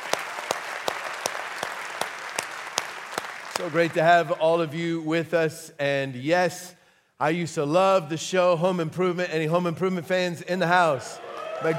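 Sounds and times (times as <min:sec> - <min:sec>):
church audience at Olson Farms applauding: 0:00.0 - 0:04.2, 0:11.2 - 0:11.7
speech: 0:03.6 - 0:11.7.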